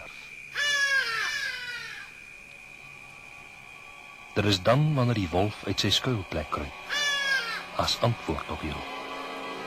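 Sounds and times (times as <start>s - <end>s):
hadeda ibis alarm call: 0.0s - 3.7s, 6.7s - 7.9s
speech: 4.4s - 7.0s, 7.8s - 9.0s.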